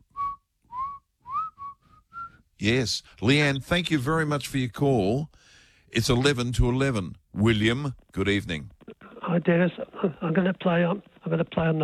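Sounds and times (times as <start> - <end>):
person whistling a song melody: 0.0 - 2.4
speech: 2.6 - 11.8.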